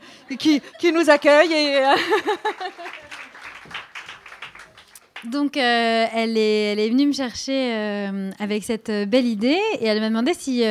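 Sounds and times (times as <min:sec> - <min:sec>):
laughter: 0:00.2 - 0:03.5
speech: 0:00.3 - 0:03.0, 0:05.2 - 0:10.6
audience applause at an evening event at the Jean Verdier community centre: 0:02.3 - 0:05.3.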